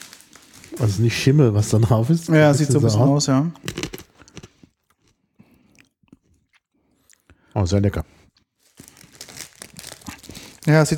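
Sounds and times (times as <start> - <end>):
speech: 0.7 - 3.9, 7.6 - 8.1, 10.7 - 10.9
crunchy wasabi-coated dried peas being chewed: 3.5 - 7.5, 8.1 - 10.9.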